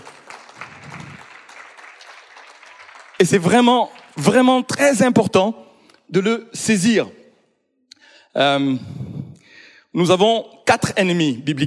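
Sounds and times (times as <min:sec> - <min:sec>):
church congregation clapping during a sermon: 0:00.0 - 0:05.1
speech: 0:03.2 - 0:07.2, 0:08.4 - 0:08.9, 0:10.0 - 0:11.6.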